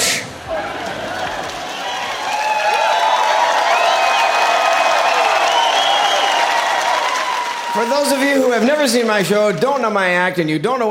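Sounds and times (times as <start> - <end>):
audience applauding: 0.4 - 10.1
speech: 7.8 - 10.8.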